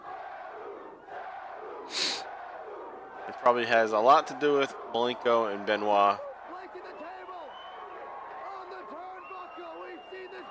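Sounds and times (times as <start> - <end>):
wrestling crowd chanting a wrestler's name: 0.0 - 9.3
speech: 3.3 - 6.3.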